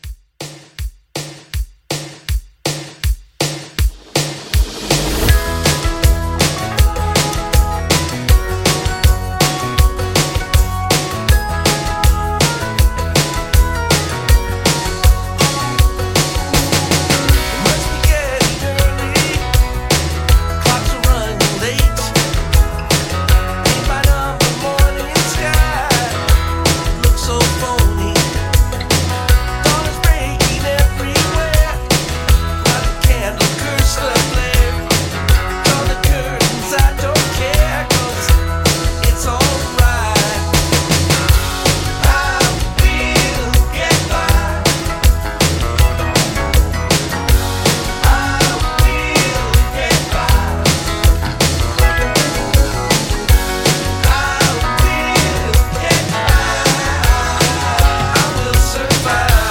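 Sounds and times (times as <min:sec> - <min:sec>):
1980s rock music at 160: 0:01.9 - 0:59.4.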